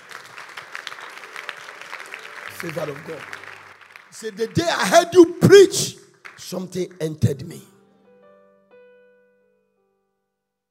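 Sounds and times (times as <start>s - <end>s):
audience clapping: 0.0s - 7.6s
speech: 2.6s - 3.4s, 4.2s - 7.7s.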